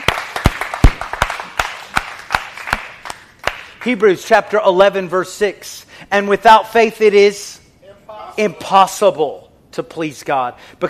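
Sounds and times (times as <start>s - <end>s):
audience clapping: 0.0s - 4.0s
speech: 3.8s - 7.6s, 8.4s - 10.8s.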